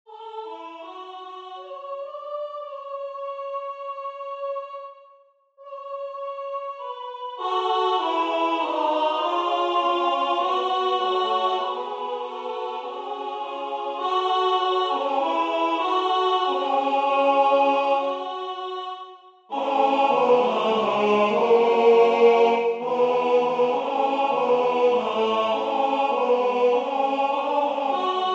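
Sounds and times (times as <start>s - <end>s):
tenor singing: 6.8s - 28.3s.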